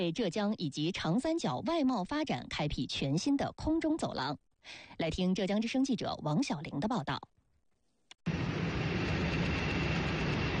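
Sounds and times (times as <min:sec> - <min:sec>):
speech: 0:00.0 - 0:07.4
cargo plane engines roaring at takeoff: 0:08.3 - 0:10.5.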